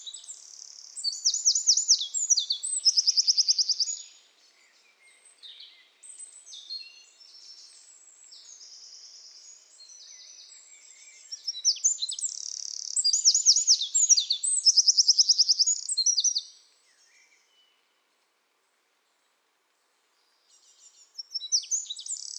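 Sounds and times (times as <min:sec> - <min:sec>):
Eurasian wren trilling song: 0:00.2 - 0:04.0, 0:11.3 - 0:16.5, 0:21.2 - 0:22.3.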